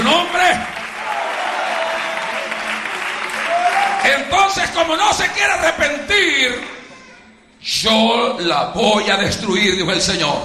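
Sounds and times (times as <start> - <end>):
crowd applause: 0.0 - 4.3
speech: 4.5 - 6.8, 7.6 - 10.4.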